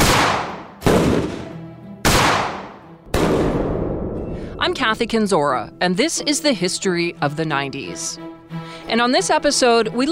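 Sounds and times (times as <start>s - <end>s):
shotgun fire: 0.0s - 4.2s
speech: 4.6s - 10.1s.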